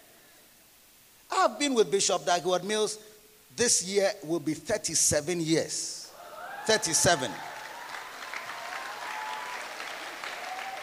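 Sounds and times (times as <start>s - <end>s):
speech: 1.4s - 6.0s, 6.6s - 7.5s
audience applause: 6.2s - 10.8s.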